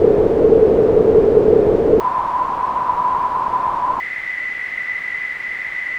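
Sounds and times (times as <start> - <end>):
filtered noise: 0.0 - 5.9.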